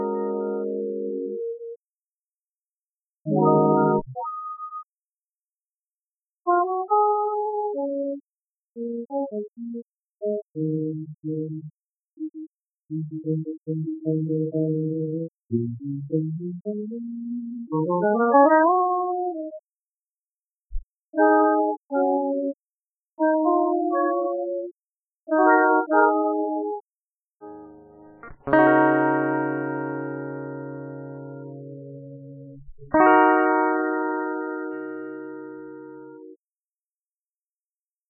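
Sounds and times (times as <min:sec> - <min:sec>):
guitar: 0:00.0 - 0:01.8, 0:03.3 - 0:04.8, 0:06.5 - 0:08.2, 0:08.8 - 0:19.6, 0:20.7 - 0:22.6, 0:23.2 - 0:24.7, 0:25.3 - 0:26.8, 0:27.4 - 0:36.4.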